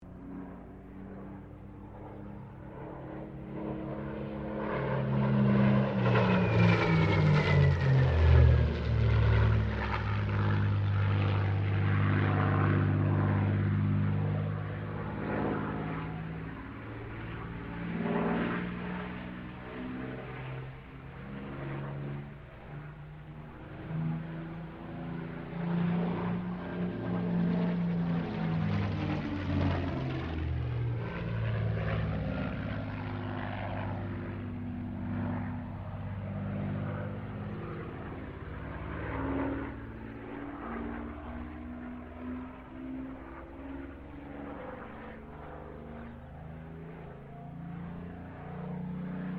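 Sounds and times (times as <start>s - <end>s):
Supermarine Spitfire MK-XVI aircraft engine: 0.0s - 49.3s.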